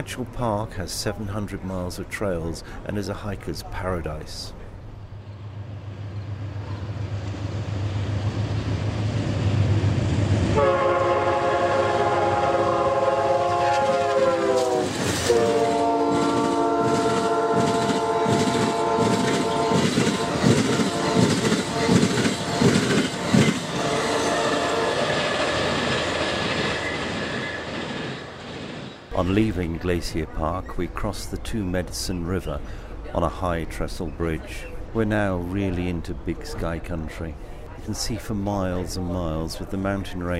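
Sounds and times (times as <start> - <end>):
speech: 0.0 - 4.6, 29.6 - 40.3
train rumbling on rails: 4.5 - 36.6
loud multi-tone train horn blasts: 10.5 - 23.0, 23.7 - 25.4.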